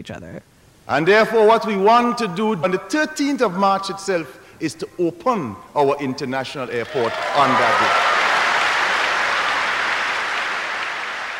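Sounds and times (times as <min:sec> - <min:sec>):
speech: 0:00.0 - 0:08.1
crowd applauding: 0:06.7 - 0:11.3.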